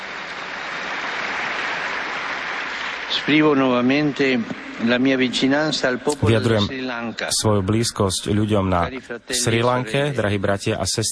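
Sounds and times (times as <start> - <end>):
applause: 0.0 - 5.2
speech: 3.2 - 11.1.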